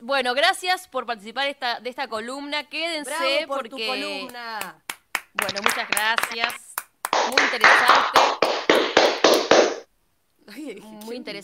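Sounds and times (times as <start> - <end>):
speech: 0.0 - 6.6, 7.2 - 8.5, 10.5 - 11.4
intense clapping: 4.3 - 9.9.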